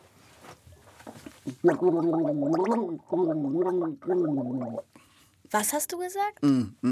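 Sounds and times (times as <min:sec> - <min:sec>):
person gargling water while saying a sentence: 0:01.5 - 0:04.9, 0:06.4 - 0:06.8
speech: 0:01.5 - 0:06.8.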